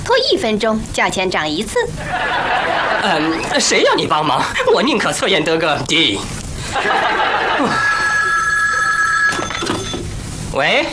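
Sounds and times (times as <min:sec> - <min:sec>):
speech: 0:00.1 - 0:07.9, 0:10.6 - 0:10.9
laughter: 0:02.0 - 0:05.0, 0:06.6 - 0:08.5
telephone ringing: 0:06.9 - 0:10.1.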